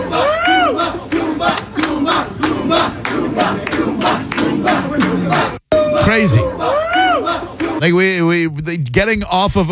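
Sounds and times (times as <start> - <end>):
rhythmic chanting or clapping: 0.0 - 5.6
crowd cheering riders off roller coaster: 0.0 - 7.8
speech: 6.2 - 6.4, 7.8 - 9.7.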